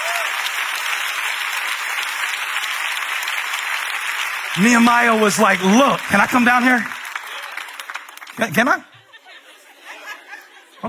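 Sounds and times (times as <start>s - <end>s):
audience clapping: 0.0s - 8.8s
speech: 4.6s - 7.0s, 8.4s - 8.9s
laughter: 7.2s - 10.8s.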